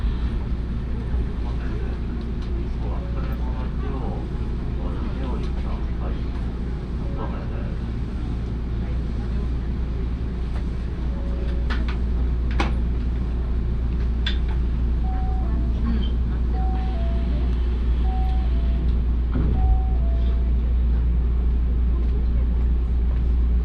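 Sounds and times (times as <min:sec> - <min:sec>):
train rumble on the way to Osaka Airport: 0:00.0 - 0:23.6
short level beeping tones: 0:18.0 - 0:18.9, 0:19.6 - 0:20.5.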